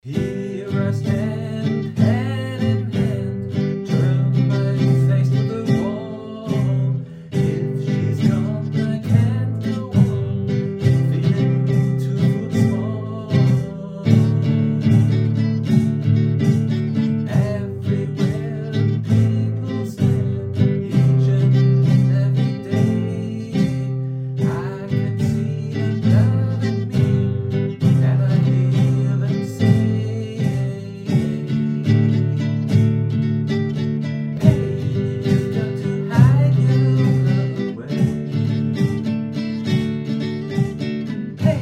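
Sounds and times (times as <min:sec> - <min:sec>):
guitar recorded with Zylia microphone: 0:00.0 - 0:41.6.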